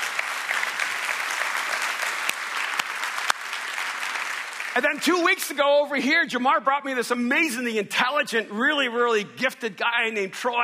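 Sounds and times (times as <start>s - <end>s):
audience applause: 0.0s - 5.0s
speech: 4.8s - 10.6s.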